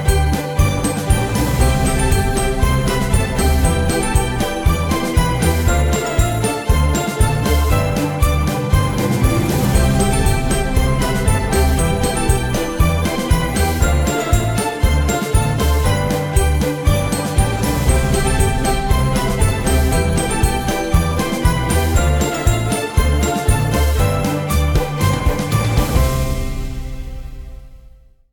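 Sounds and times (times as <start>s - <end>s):
christmas holiday background music: 0.0s - 28.3s.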